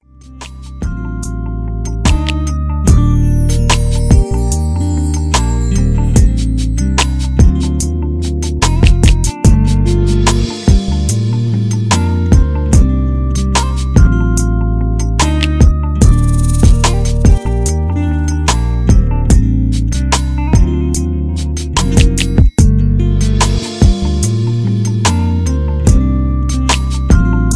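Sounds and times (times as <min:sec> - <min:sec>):
ballad: 0:00.2 - 0:27.5.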